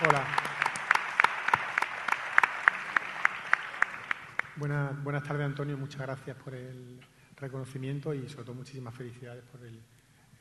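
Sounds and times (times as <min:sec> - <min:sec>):
audience applause: 0:00.0 - 0:04.6
speech: 0:00.1 - 0:00.4, 0:04.6 - 0:10.0.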